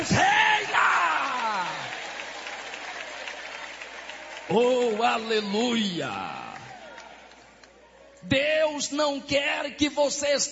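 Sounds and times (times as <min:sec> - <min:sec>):
audience applauding: 0:00.0 - 0:07.7
speech: 0:04.5 - 0:06.4, 0:08.2 - 0:10.5.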